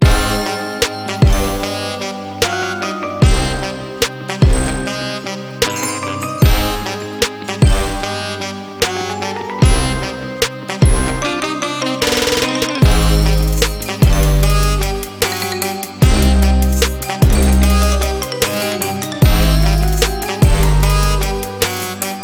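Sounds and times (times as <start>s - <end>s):
background music: 0.0s - 22.2s.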